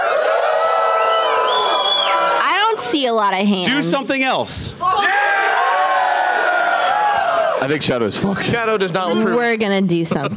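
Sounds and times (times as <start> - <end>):
crowd yelling: 0.0 - 7.9
speech: 2.9 - 5.1, 7.6 - 10.3.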